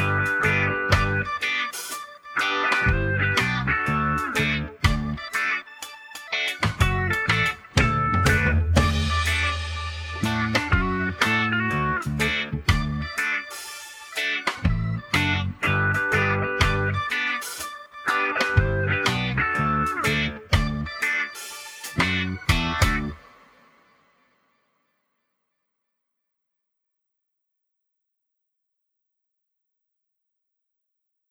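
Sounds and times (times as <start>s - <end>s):
slower backing track: 0.0s - 23.2s.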